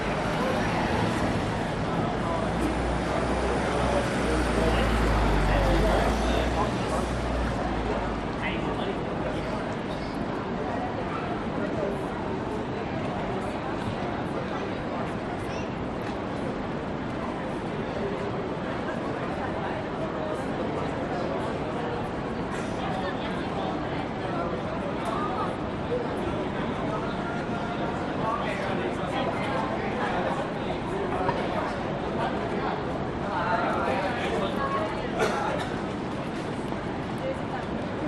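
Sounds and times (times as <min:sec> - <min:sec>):
traffic passing close on George Street in Sydney at night: 0:00.0 - 0:09.6
people on a city street at night in Sydney: 0:00.0 - 0:38.0.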